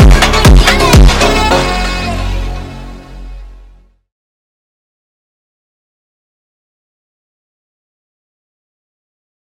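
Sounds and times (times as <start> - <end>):
sped up funk music: 0.0 - 3.6.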